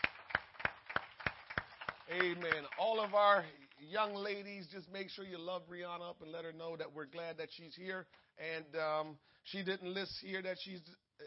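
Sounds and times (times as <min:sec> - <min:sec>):
audience clapping hands: 0:00.0 - 0:04.4
speech: 0:02.1 - 0:11.2.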